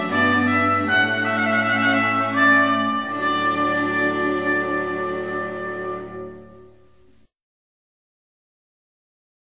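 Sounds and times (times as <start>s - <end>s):
trumpet piece: 0.0s - 7.2s.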